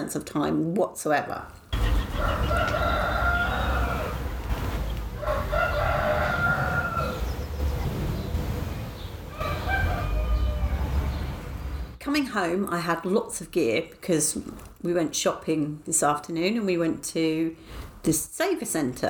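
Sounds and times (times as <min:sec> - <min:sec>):
constant noise: 0:00.0 - 0:19.0
speech: 0:00.1 - 0:01.6, 0:12.1 - 0:19.0
neighbour's cockerel crowing late into the afternoon: 0:01.7 - 0:04.5, 0:05.1 - 0:07.3, 0:09.3 - 0:11.4.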